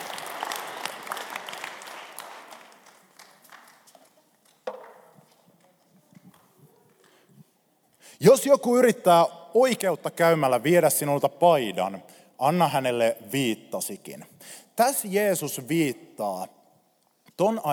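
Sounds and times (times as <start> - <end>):
audience applause: 0.0 - 3.9
speech: 8.2 - 16.6, 17.4 - 17.7.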